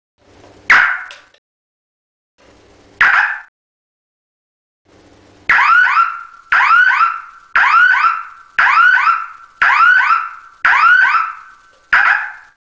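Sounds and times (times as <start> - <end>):
siren: 5.5 - 12.6.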